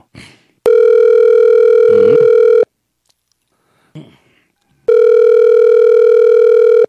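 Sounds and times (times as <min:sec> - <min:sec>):
ringback tone of an unanswered telephone call: 0:00.7 - 0:02.7, 0:04.6 - 0:06.8.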